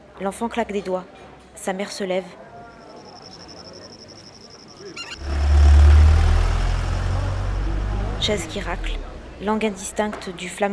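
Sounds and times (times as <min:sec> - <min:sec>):
speech: 0:00.2 - 0:02.4, 0:08.2 - 0:10.7
Renault Kangoo small van passing: 0:05.0 - 0:10.5.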